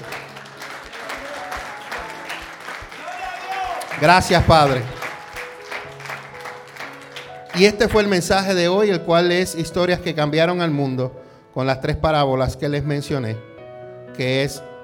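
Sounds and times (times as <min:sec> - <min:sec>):
audience applauding: 0:00.0 - 0:08.2
speech: 0:04.0 - 0:05.0, 0:07.6 - 0:13.5, 0:14.2 - 0:14.7.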